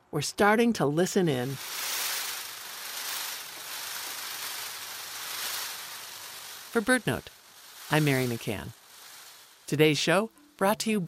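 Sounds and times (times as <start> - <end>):
speech: 0.1 - 1.9, 6.8 - 8.8, 9.7 - 11.0
peacock train rattle love buzz: 1.1 - 9.7.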